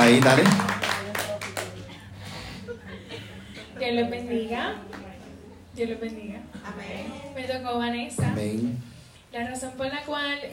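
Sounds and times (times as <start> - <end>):
speech: 0.0 - 0.7, 3.9 - 5.0, 5.8 - 10.5
audience applauding: 0.0 - 2.0
laughter: 1.6 - 4.2.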